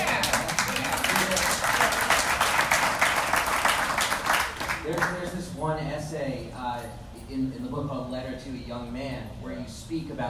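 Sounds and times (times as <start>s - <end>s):
audience clapping: 0.0s - 5.2s
speech: 5.6s - 10.2s.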